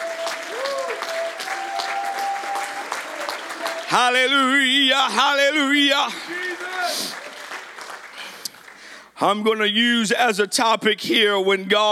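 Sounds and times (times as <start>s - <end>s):
thunderous audience applause: 0.0s - 4.8s, 5.8s - 8.9s
speech: 3.9s - 7.1s, 9.2s - 11.9s.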